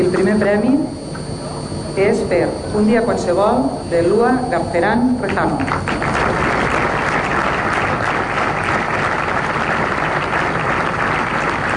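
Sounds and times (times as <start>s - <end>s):
speech: 0.1s - 1.0s, 2.0s - 6.0s
applause: 5.3s - 11.7s.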